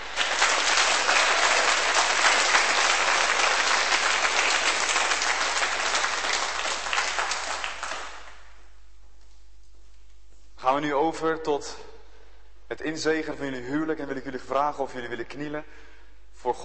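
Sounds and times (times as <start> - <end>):
wedding guests applauding: 0.0 - 8.6
speech: 10.8 - 11.9, 12.7 - 16.6.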